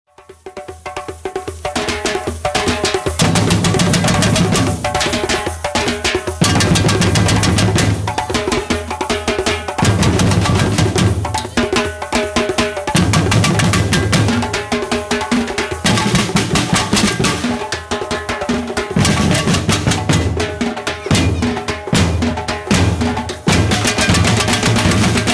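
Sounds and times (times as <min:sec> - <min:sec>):
batucada drumming: 0:00.1 - 0:25.3.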